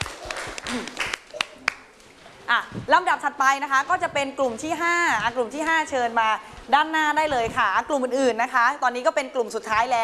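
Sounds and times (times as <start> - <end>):
audience applause: 0.0 - 1.9
speech: 0.7 - 1.0, 2.5 - 10.0.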